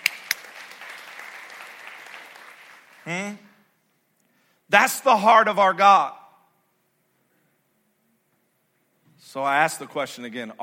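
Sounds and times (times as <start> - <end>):
audience applause: 0.0 - 3.3
speech: 3.0 - 3.5, 4.7 - 6.2, 9.3 - 10.6.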